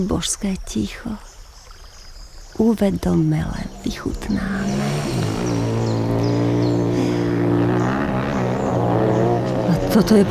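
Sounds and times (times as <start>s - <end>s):
speech: 0.0s - 1.3s, 2.6s - 5.5s, 10.0s - 10.2s
motorcycles riding past: 3.6s - 10.2s.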